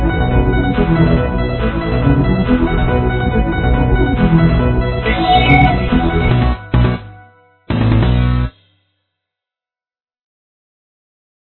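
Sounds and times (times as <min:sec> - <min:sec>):
techno music: 0:00.7 - 0:08.4.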